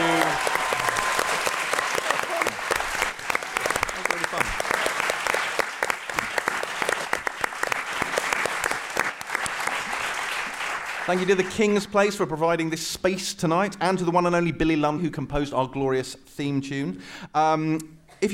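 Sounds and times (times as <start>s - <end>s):
audience round of applause: 0.0s - 11.8s
speech: 11.1s - 18.3s.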